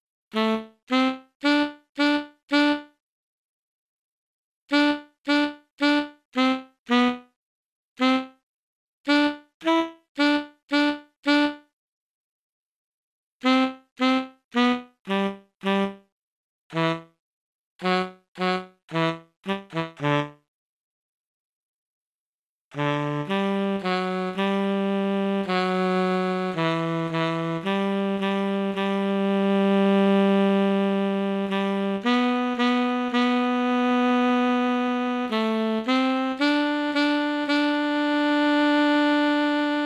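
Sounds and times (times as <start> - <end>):
tenor saxophone: 0.3 - 3.0, 4.7 - 7.4, 8.0 - 8.4, 9.1 - 11.7, 13.4 - 16.1, 16.7 - 17.2, 17.8 - 20.5, 22.7 - 39.8.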